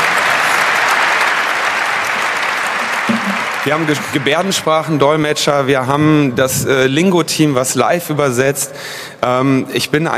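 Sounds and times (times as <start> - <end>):
steady applause from a large audience: 0.0 - 5.2
speech: 3.6 - 10.1.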